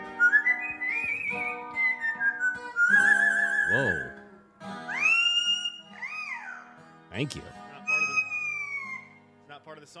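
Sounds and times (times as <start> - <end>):
parrot singing a whistled melody: 0.0 - 4.2, 4.9 - 6.6, 7.8 - 9.2
guitar playing plucked notes: 0.0 - 9.4
speech: 3.7 - 4.1, 7.2 - 7.6.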